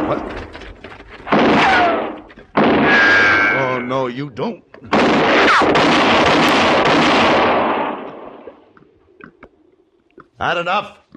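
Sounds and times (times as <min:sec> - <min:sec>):
speech: 0:00.1 - 0:00.5, 0:04.1 - 0:06.2, 0:10.4 - 0:11.0
gunshot fired as a warning: 0:01.3 - 0:03.6, 0:04.9 - 0:08.6.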